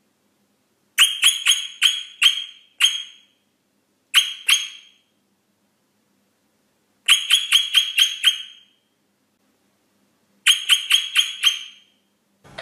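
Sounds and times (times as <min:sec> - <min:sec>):
rosella piping short whistled notes: 0:01.0 - 0:03.3, 0:07.1 - 0:08.8, 0:10.5 - 0:12.0.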